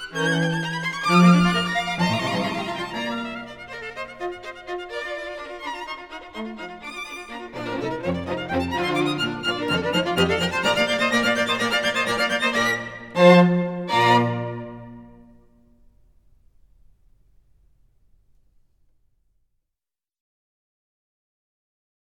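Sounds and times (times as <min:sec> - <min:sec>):
string quartet in B flat: 0:00.0 - 0:15.6.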